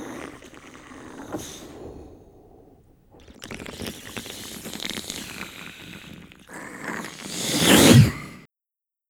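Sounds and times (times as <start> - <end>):
monster slobbering: 0.0 - 7.9.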